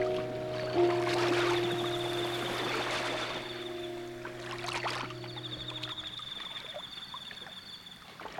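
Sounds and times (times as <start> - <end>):
music box: 0.0 - 6.0
rain: 0.0 - 7.0
ocean: 0.0 - 8.3.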